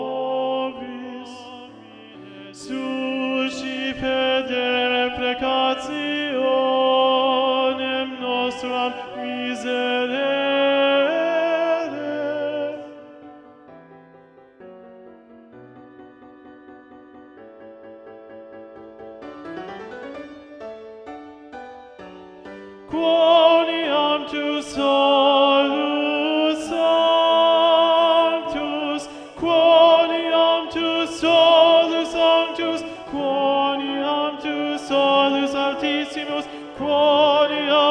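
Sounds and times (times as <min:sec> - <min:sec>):
tenor singing: 0:00.0 - 0:13.7, 0:22.5 - 0:37.8.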